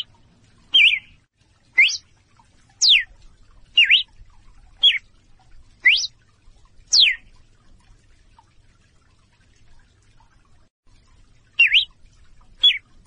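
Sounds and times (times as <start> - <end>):
female red-cowled cardinal calling in clear short whistles: 0.8 - 1.1, 1.8 - 2.0, 2.8 - 3.1, 3.8 - 4.1, 5.8 - 6.1, 6.9 - 7.2, 11.6 - 11.9.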